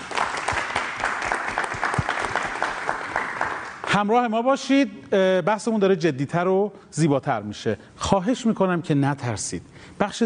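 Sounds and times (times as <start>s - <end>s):
audience applause: 0.0s - 3.9s
speech: 4.0s - 10.2s.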